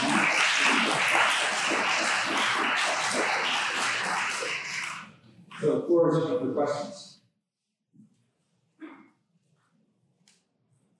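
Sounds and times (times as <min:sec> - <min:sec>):
audience applause at the close of a talk on Plato: 0:00.0 - 0:05.1
speech: 0:05.9 - 0:07.0.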